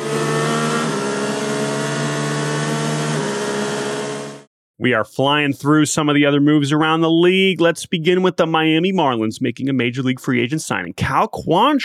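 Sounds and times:
stick-shift car engine revving hard as it speeds away: 0:00.0 - 0:04.5
speech: 0:04.8 - 0:11.8.

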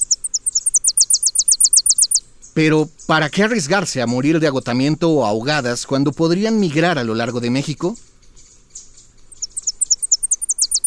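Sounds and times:
Tennessee warbler calls: 0:00.0 - 0:10.8
speech: 0:02.6 - 0:08.1.

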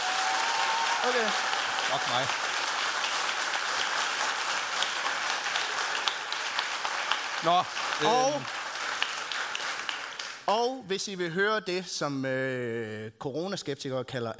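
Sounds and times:
audience clapping: 0:00.0 - 0:10.5
speech: 0:01.0 - 0:02.5, 0:07.4 - 0:08.6, 0:10.5 - 0:14.3.

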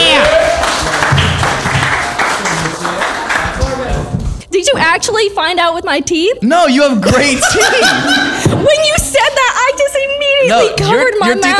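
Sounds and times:
audience clapping: 0:00.0 - 0:04.2
speech: 0:05.0 - 0:09.8, 0:10.5 - 0:11.5
laughter: 0:07.0 - 0:08.9.

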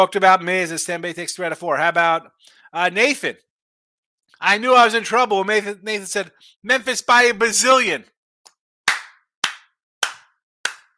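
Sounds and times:
speech: 0:00.0 - 0:03.5, 0:04.4 - 0:08.1
sharp hand claps: 0:08.5 - 0:10.9.

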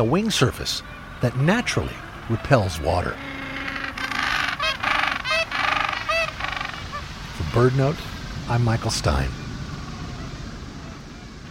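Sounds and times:
speech: 0:00.0 - 0:03.3, 0:07.6 - 0:09.4
Gentoo penguin calls: 0:01.2 - 0:07.1.

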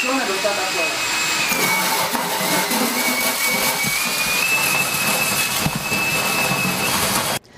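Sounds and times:
duct cleaning machine vacuuming dust from a house's vents: 0:00.0 - 0:07.5.

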